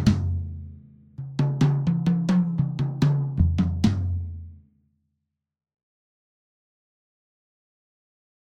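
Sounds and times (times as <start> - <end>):
Fame MS drum kit 10 12 14 inch toms played together: 0.0 - 4.4.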